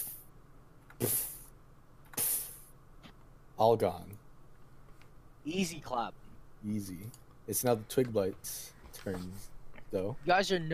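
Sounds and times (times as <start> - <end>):
speech: 1.0 - 1.3, 3.6 - 4.2, 5.4 - 10.7
voice imitating sparks fizzling out: 1.0 - 1.5, 2.2 - 2.7.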